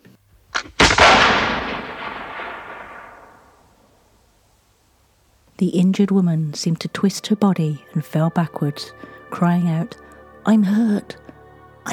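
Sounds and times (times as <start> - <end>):
rifle gunshot sound effect: 0.6 - 3.9
speech: 5.6 - 11.2.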